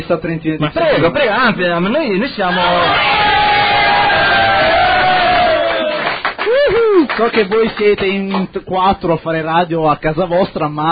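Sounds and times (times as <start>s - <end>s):
speech: 0.0s - 3.2s, 7.1s - 10.8s
crowd applause and cheering: 2.6s - 7.9s.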